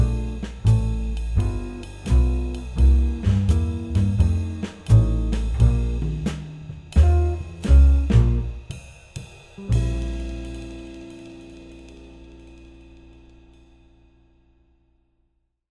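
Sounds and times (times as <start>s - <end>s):
muted swing piano: 0.0s - 8.7s, 9.6s - 11.5s.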